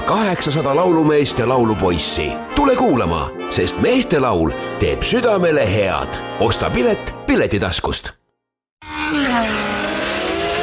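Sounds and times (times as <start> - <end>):
speech: 0.1 - 8.2
race car roaring past at speed on a race track: 8.8 - 10.6.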